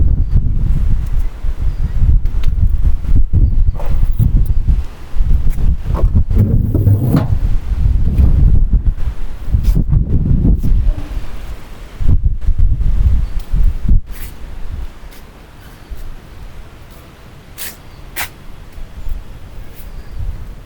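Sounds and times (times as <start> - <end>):
heavy wind storm: 0.0 - 15.0.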